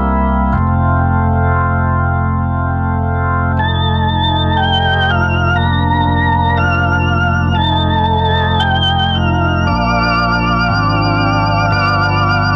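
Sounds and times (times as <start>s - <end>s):
Hammond organ playing a hymn: 0.0s - 12.5s.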